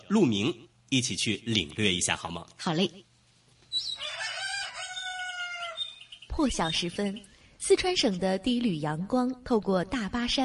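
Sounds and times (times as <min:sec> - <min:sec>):
speech: 0:00.1 - 0:03.1, 0:06.4 - 0:10.4
black chicken rooster crowing at dawn: 0:03.9 - 0:06.1.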